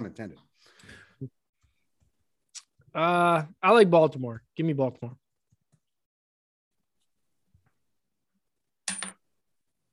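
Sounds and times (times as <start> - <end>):
speech: 0.1 - 1.4, 2.9 - 5.2
quarter coin flipped and landing with a metallic clatter: 8.9 - 9.2.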